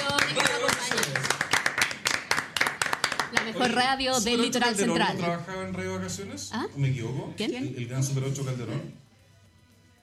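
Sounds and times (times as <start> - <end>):
applause for Radio Vacaciones: 0.0 - 3.8
speech: 3.6 - 9.0.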